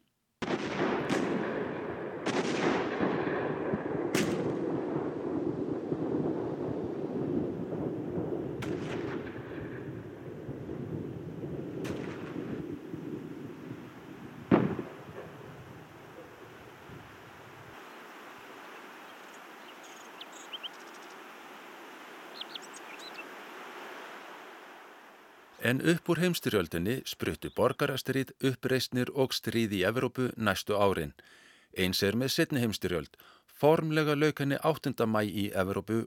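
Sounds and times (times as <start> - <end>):
artillery fire ending at WWI armistice: 0.4 - 17.1
faint hiss: 11.0 - 29.2
speech: 25.6 - 36.0.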